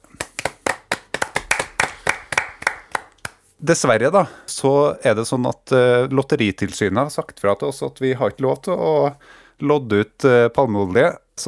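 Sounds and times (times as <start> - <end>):
hands clapping: 0.0 - 3.5
speech: 3.6 - 11.4.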